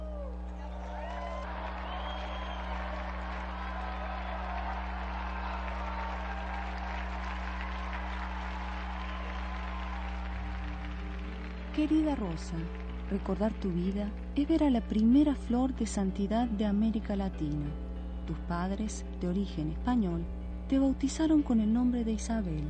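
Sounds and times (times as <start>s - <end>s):
audience applause: 0.0s - 13.8s
speech: 11.8s - 22.6s.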